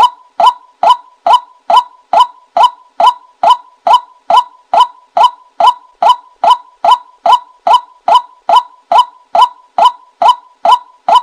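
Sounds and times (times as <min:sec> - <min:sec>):
white-breasted waterhen hollow calls: 0:00.0 - 0:11.2.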